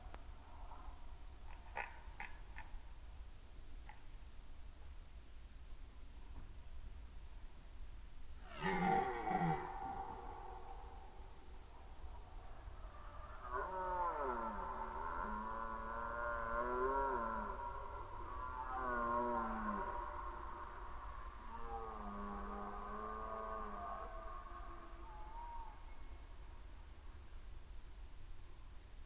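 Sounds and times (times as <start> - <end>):
faint low rumble: 0.0 - 29.0
red deer roaring: 8.4 - 11.1, 12.8 - 25.8.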